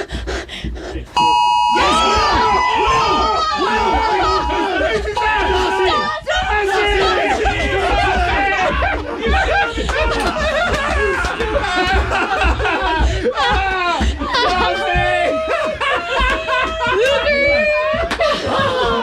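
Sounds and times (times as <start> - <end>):
group of people chattering excitedly and laughing: 0.0 - 19.0
phone alert chimes: 1.2 - 2.7.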